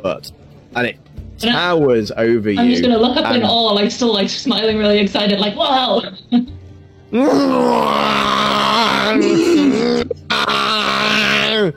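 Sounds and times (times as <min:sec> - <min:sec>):
speech: 0:00.0 - 0:06.5, 0:07.1 - 0:11.7
voice imitating a giant badger-mole screaming: 0:07.1 - 0:11.7.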